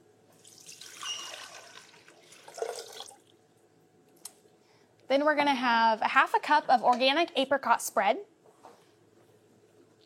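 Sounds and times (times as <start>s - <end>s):
water being poured for cooking: 0.4s - 3.4s
speech: 5.2s - 8.3s.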